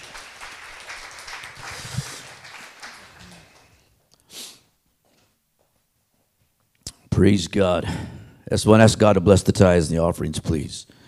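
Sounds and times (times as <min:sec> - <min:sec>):
audience clapping: 0:00.0 - 0:04.0
speech: 0:07.2 - 0:11.0.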